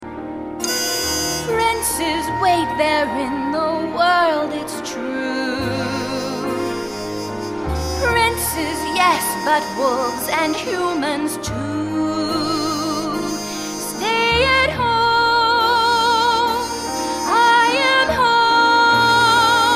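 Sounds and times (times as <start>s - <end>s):
vocals: 1.4s - 19.7s.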